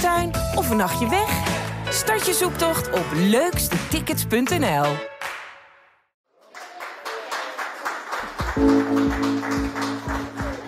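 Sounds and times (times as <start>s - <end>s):
speech: 0.6s - 5.1s
applause in a small hospital room: 4.4s - 5.6s, 6.3s - 10.6s.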